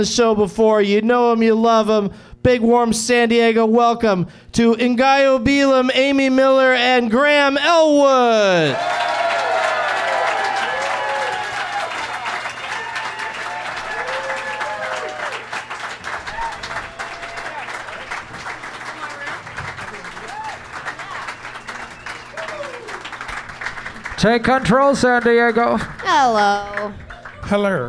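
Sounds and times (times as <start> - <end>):
speech: 0.0 - 9.1, 24.2 - 27.8
live audience applause and cheering: 8.5 - 27.8.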